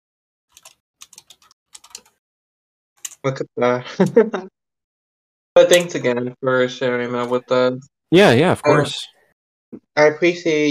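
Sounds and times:
typing on a computer keyboard: 0:00.5 - 0:02.2
speech: 0:03.2 - 0:04.6, 0:05.6 - 0:10.6.

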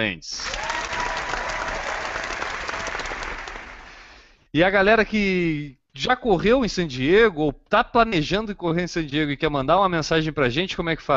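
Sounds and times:
speech: 0:00.0 - 0:00.6, 0:04.5 - 0:11.1
audience applause: 0:00.4 - 0:04.2.

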